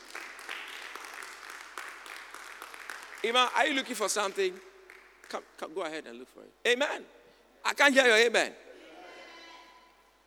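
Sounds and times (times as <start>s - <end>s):
crowd clapping hands together: 0.0s - 5.5s
speech: 3.2s - 4.7s, 5.3s - 8.6s.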